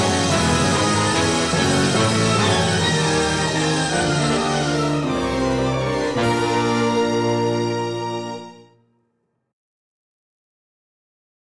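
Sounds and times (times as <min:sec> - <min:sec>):
tuba and trombones playing: 0:00.0 - 0:08.7.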